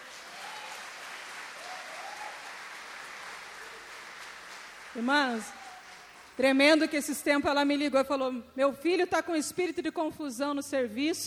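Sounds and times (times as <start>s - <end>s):
audience applauding: 0.0s - 6.4s
speech: 5.0s - 5.6s, 6.4s - 11.2s.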